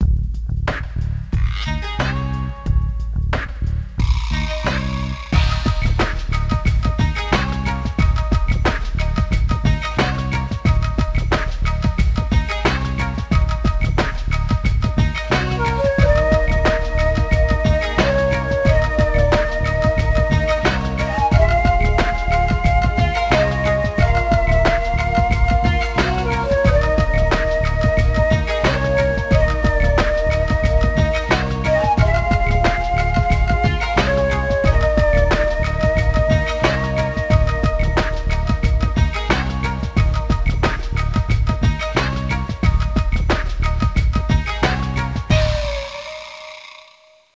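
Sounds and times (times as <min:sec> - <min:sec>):
unused background music: 0:00.0 - 0:47.3.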